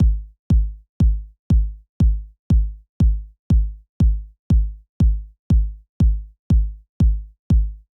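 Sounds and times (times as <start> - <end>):
kick drum: 0.0 - 7.9.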